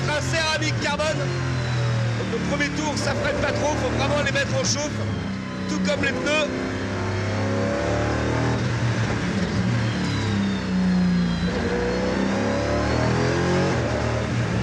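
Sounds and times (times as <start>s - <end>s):
race car engine accelerating: 0.0s - 14.6s
speech: 2.3s - 6.8s.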